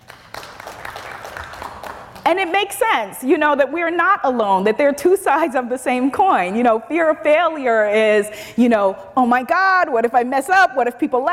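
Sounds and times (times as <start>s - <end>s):
audience clapping: 0.0s - 2.4s
speech: 2.3s - 11.3s.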